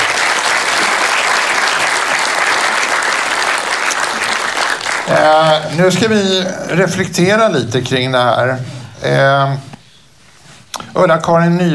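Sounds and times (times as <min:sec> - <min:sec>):
audience applause: 0:00.0 - 0:06.1
speech: 0:05.1 - 0:09.7, 0:11.0 - 0:11.7.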